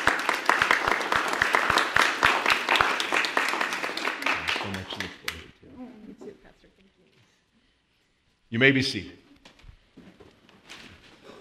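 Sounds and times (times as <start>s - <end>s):
round of applause: 0.0s - 5.5s
speech: 4.7s - 5.4s, 8.5s - 9.2s.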